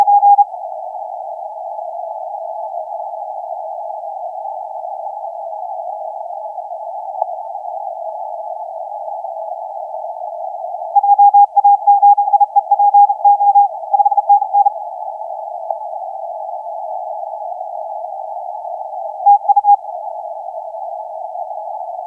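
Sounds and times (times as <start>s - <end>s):
CW morse code tones on the 30m band: 0.0s - 0.4s, 11.0s - 14.7s, 19.3s - 19.8s.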